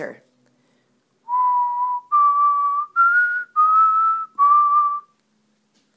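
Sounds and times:
whistle: 1.3s - 5.2s.

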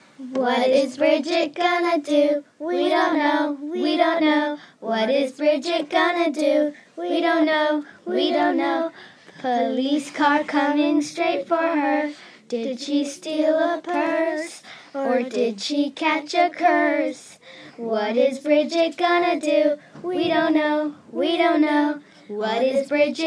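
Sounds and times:
girl singing underground song: 0.2s - 23.2s.

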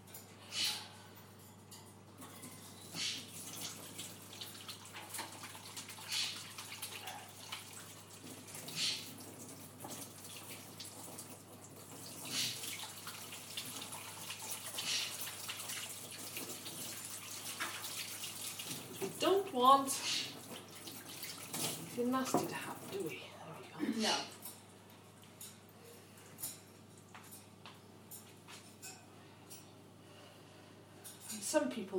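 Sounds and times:
tap water running while washing hands after handling raw turkey: 2.8s - 23.4s
speech: 19.6s - 20.1s, 22.0s - 23.3s, 24.0s - 24.3s.

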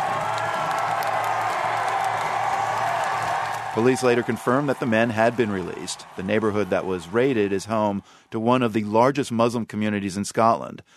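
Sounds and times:
faint clapping: 0.0s - 7.5s
large crowd of demonstrators cheering: 0.0s - 9.2s
speech: 3.8s - 10.9s.

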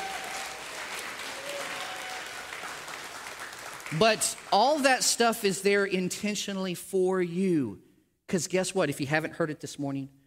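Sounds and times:
audience applause: 0.0s - 4.9s
speech: 3.9s - 10.2s.

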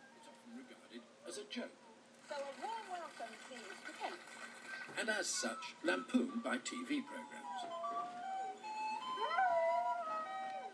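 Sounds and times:
speech: 0.5s - 8.0s
dog howling: 7.8s - 10.7s.

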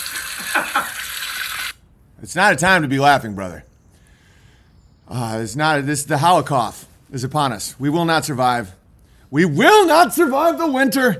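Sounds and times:
hot water running from a tap: 0.0s - 1.8s
speech: 2.2s - 3.7s, 5.1s - 11.1s.

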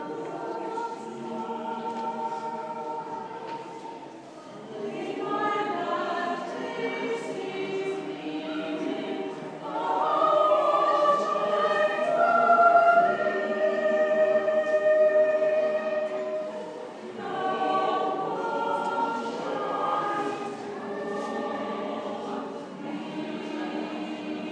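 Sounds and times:
choir singing: 0.0s - 24.5s.

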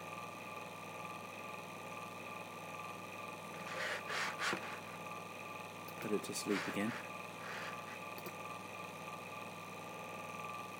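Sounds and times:
iMac CPU cooling fan spinning at about 2400 RPM: 0.0s - 10.7s
speech: 6.1s - 7.1s.

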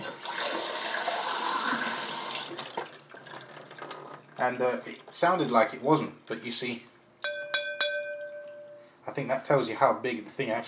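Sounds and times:
water pouring into a large pint glass: 0.2s - 3.6s
speech: 4.4s - 6.9s, 9.2s - 10.6s.

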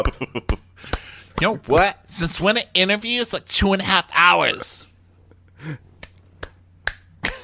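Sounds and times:
hand claps: 0.0s - 1.1s, 6.0s - 7.4s
speech: 0.0s - 4.9s, 5.6s - 5.9s.

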